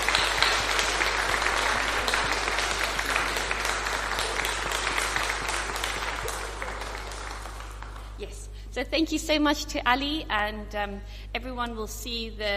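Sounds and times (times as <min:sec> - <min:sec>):
audience applause: 0:00.0 - 0:08.2
speech: 0:08.8 - 0:12.5.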